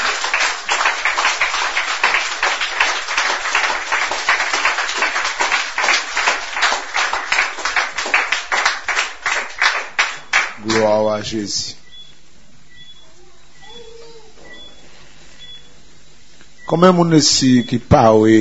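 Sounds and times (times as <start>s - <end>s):
audience applauding: 0.0s - 11.3s
speech: 11.2s - 11.8s, 16.7s - 18.4s.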